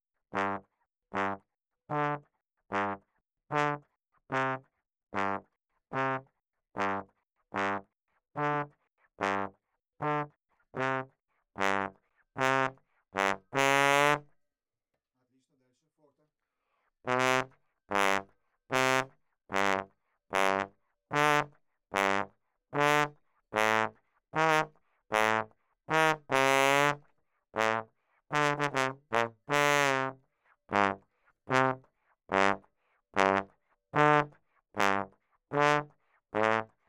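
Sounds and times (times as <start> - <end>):
ragtime trombone: 0.4 - 4.6, 5.2 - 5.4, 6.0 - 6.2, 6.8 - 7.0, 8.4 - 11.0, 11.6 - 14.2, 17.1 - 27.0, 27.6 - 32.6, 33.2 - 36.7.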